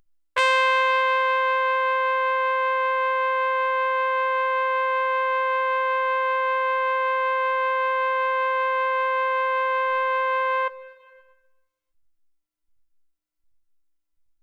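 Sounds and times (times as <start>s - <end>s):
trumpet: 0.4s - 11.5s.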